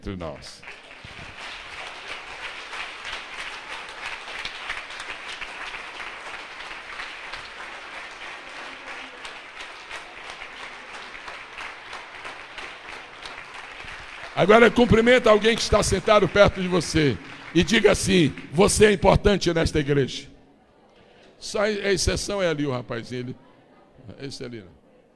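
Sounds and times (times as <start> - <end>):
speech: 0.0 - 1.4, 14.4 - 20.3, 21.4 - 23.4, 24.0 - 24.8
audience applauding: 0.4 - 20.0.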